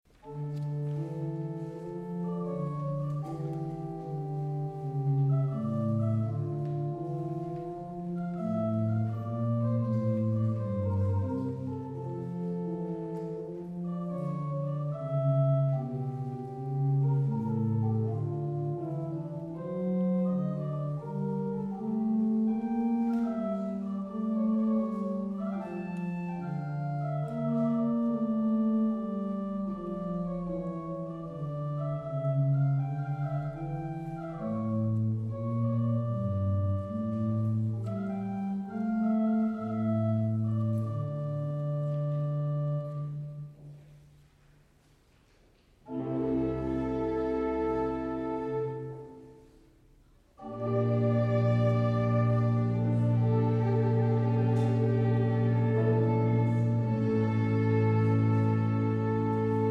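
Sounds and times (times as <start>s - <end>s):
organ playing an adagio: 0.1s - 43.8s, 45.8s - 49.6s, 50.4s - 59.6s
orchestra playing an adagio: 0.1s - 59.6s.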